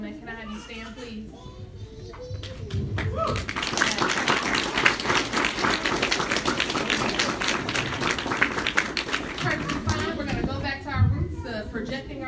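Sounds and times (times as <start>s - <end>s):
murmur of voices: 0.0s - 12.2s
speech: 0.4s - 5.1s
crowd applause: 2.4s - 10.5s.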